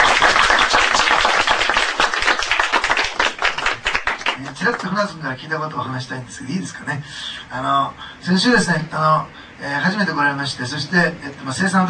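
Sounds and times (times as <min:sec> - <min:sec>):
welcoming applause: 0:00.0 - 0:04.9
speech: 0:04.7 - 0:11.8.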